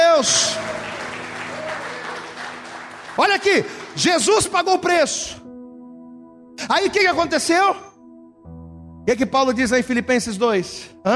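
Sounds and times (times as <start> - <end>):
speech: 0.2 - 0.6, 3.4 - 5.5, 6.7 - 7.9, 9.0 - 11.1
audience clapping: 0.2 - 4.6.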